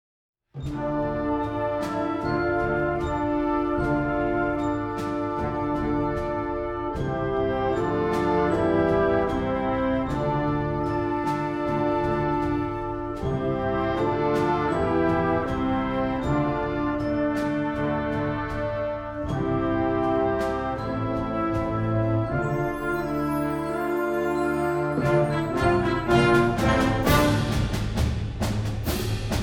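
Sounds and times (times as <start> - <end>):
concert band playing: 0.6 - 29.4.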